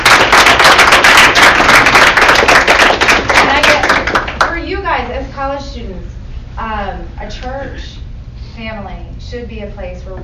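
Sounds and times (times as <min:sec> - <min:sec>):
audience applause: 0:00.0 - 0:04.5
speech: 0:06.0 - 0:07.9, 0:08.6 - 0:10.2.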